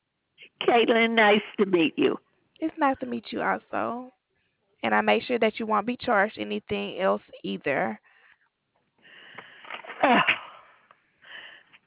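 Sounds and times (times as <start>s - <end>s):
speech: 0.6s - 4.2s, 4.8s - 8.1s
sneeze: 9.8s - 10.5s.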